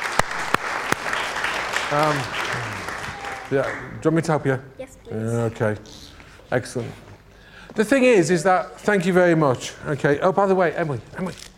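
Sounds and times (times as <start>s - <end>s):
crowd applauding: 0.0s - 4.2s
speech: 1.9s - 2.7s, 3.5s - 7.1s, 7.7s - 11.5s.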